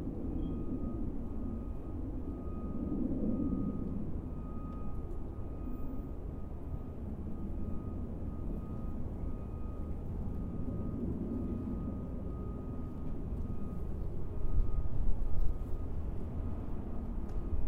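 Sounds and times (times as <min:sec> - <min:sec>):
low rumble of planes and traffic: 0:00.0 - 0:17.6.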